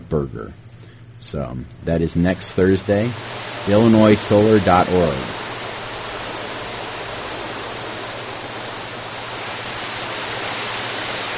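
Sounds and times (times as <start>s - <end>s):
low droning hum: 0.0s - 11.3s
speech: 0.1s - 0.6s, 1.2s - 5.4s
storm sound effect: 2.3s - 11.3s.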